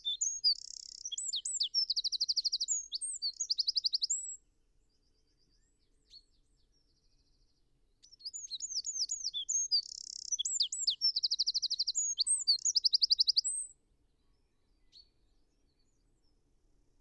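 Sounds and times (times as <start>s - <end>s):
Eurasian wren singing: 0.0s - 4.4s, 8.1s - 13.7s.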